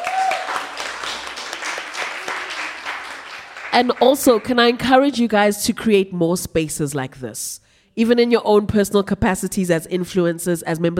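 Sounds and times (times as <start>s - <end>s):
audience clapping: 0.0s - 5.0s
speech: 3.8s - 10.9s.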